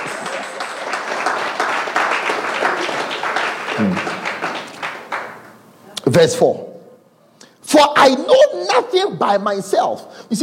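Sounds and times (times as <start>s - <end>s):
audience clapping: 0.0s - 5.7s
speech: 6.2s - 6.7s, 7.7s - 10.4s.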